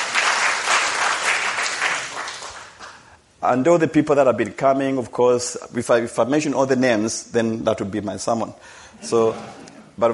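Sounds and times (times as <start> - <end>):
audience applause: 0.0 - 2.9
speech: 3.4 - 10.1.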